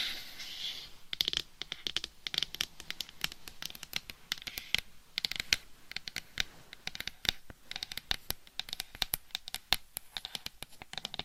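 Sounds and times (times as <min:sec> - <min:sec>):
light scratchy strokes: 0:00.0 - 0:08.3
fingertip tapping on a hard surface: 0:01.1 - 0:11.2.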